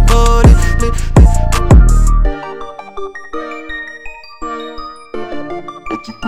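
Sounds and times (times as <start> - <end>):
trap beat: 0.0 - 2.3.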